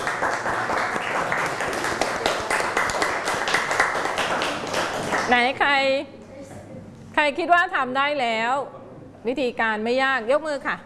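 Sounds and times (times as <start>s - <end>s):
group of children clapping in a classroom: 0.0s - 5.4s
speech: 5.3s - 6.2s, 7.2s - 10.8s.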